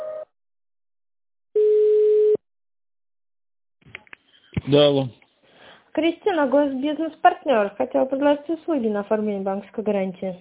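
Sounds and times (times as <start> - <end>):
telephone line beeps while a call is transferred: 1.6 - 2.4
speech: 4.7 - 5.2, 6.0 - 10.3.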